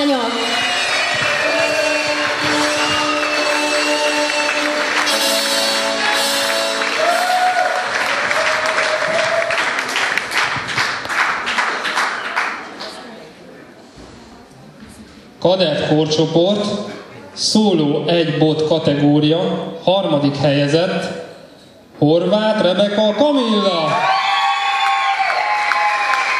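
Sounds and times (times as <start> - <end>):
audience applause: 0.0 - 13.1, 24.0 - 26.3
music: 0.1 - 7.8
speech: 15.5 - 21.2, 22.0 - 24.1.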